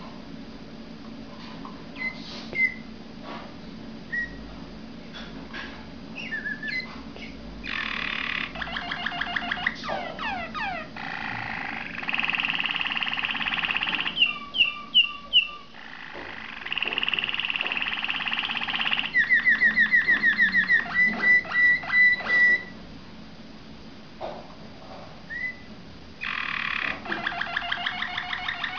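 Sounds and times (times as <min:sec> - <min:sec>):
Waterslager canary trilling song: 0:02.0 - 0:02.9, 0:04.1 - 0:04.4, 0:06.2 - 0:22.8, 0:25.3 - 0:28.7.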